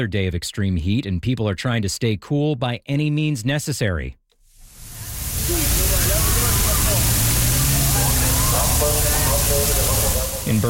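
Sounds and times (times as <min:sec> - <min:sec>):
speech: 0:00.0 - 0:04.2, 0:10.5 - 0:10.6
police water cannon spraying a crowd in Berlin: 0:04.6 - 0:10.6.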